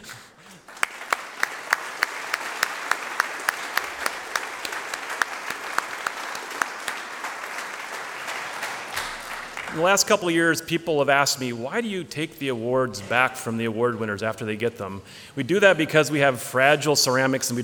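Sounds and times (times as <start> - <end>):
audience applause: 0.5 - 10.2
speech: 9.8 - 17.6.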